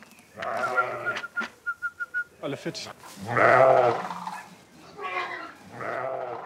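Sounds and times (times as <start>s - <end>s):
sheep bleating: 0.4s - 1.3s, 3.2s - 6.4s
speech: 2.4s - 4.2s.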